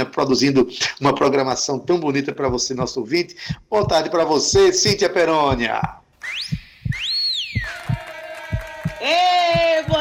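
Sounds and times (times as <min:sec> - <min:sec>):
speech: 0:00.0 - 0:06.4, 0:09.0 - 0:09.9
person whistling: 0:06.2 - 0:07.8.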